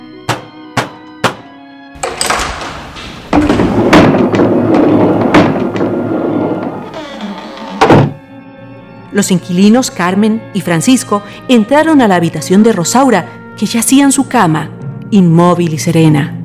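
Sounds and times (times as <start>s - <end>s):
door being forced open, breaking: 2.0s - 8.2s
speech: 9.2s - 16.4s.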